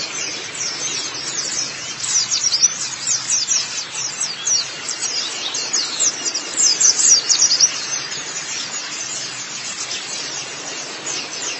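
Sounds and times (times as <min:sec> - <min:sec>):
white-eye singing: 0:00.0 - 0:11.5.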